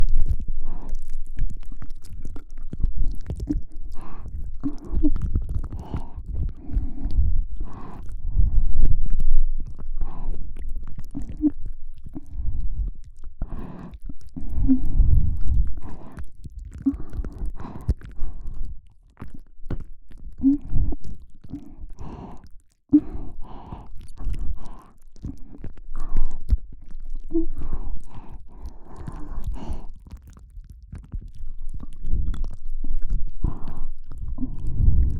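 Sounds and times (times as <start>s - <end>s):
ASMR ear licking loop in the left ear: 0.0s - 35.1s.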